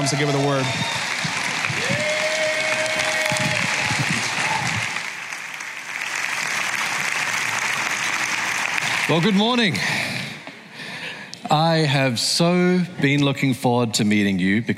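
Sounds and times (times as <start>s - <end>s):
speech: 0.0s - 1.0s, 9.1s - 10.0s, 11.5s - 14.7s
audience clapping greeting a pastor coming to the stage: 0.0s - 10.4s.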